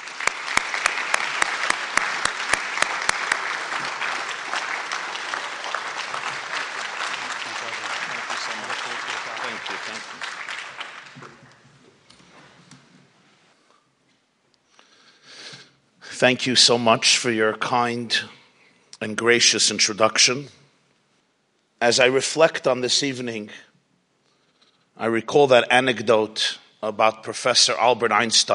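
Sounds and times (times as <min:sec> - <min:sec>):
audience applause welcoming a rabbi to the stage: 0:00.0 - 0:11.7
speech: 0:16.2 - 0:18.4, 0:19.0 - 0:20.6, 0:21.8 - 0:23.7, 0:25.0 - 0:28.5.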